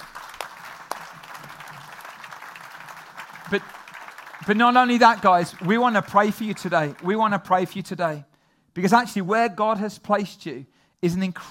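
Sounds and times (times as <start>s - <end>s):
audience applause: 0.0s - 7.2s
speech: 3.5s - 3.8s, 4.4s - 11.4s.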